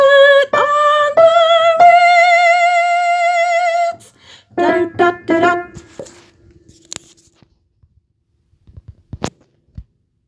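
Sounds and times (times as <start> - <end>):
soprano singing: 0.0 - 6.2.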